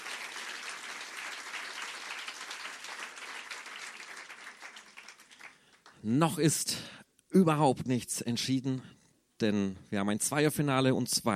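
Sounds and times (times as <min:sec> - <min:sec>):
audience applause: 0:00.0 - 0:06.0
speech: 0:06.0 - 0:11.3.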